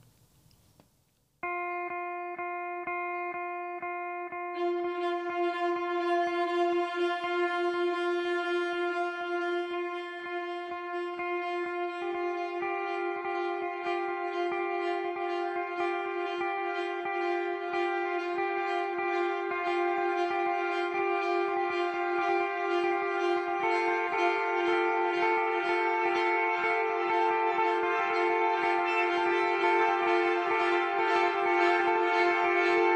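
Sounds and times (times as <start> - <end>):
instrumental film score buzzy drone: 1.4 - 32.9
steady ticking pulse: 1.4 - 32.9.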